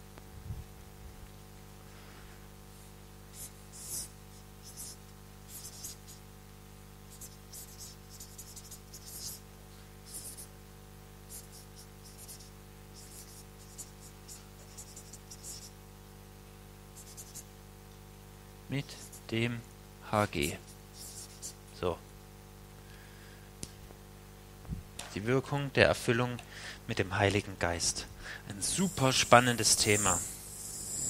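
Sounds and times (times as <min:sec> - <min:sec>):
marker writing in red on a board: 0:03.4 - 0:06.2, 0:07.1 - 0:09.4, 0:10.1 - 0:10.5, 0:11.3 - 0:15.8, 0:17.0 - 0:17.5, 0:18.9 - 0:19.3, 0:20.4 - 0:21.6, 0:28.6 - 0:31.0
speech: 0:18.8 - 0:20.6, 0:21.8 - 0:22.0, 0:25.2 - 0:30.3.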